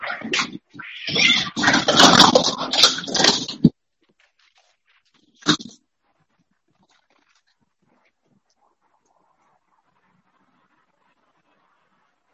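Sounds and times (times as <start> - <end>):
kittens fighting: 0.0 - 3.8, 5.3 - 5.8.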